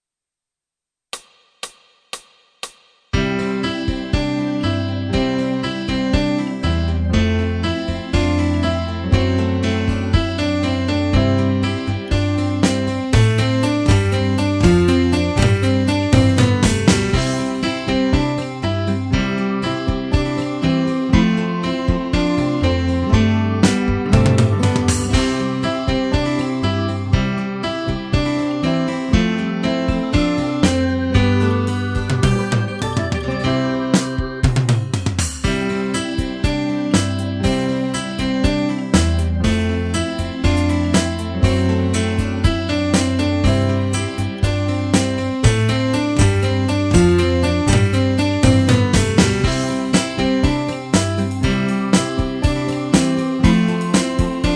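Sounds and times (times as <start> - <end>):
piano: 3.2 - 54.5.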